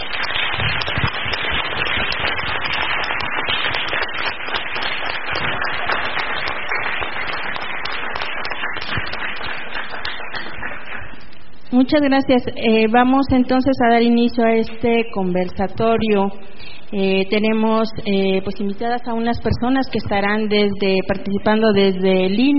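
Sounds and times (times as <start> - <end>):
audience applause: 0.0 - 11.3
speech: 11.8 - 22.5.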